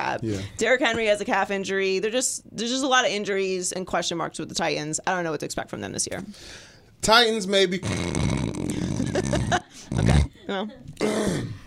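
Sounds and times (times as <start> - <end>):
speech: 0.1 - 8.5, 9.2 - 11.6
person imitating snoring: 7.8 - 10.4
laughter: 8.7 - 10.9.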